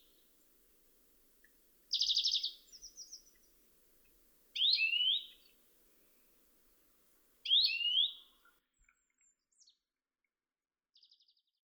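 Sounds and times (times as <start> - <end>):
Chloris chloris: 1.9 - 3.4, 4.6 - 5.4, 7.5 - 8.2.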